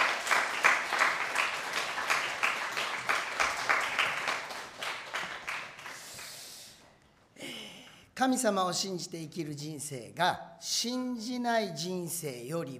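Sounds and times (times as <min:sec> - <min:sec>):
audience applause welcoming speaker: 0:00.0 - 0:06.2
speech: 0:08.2 - 0:12.7.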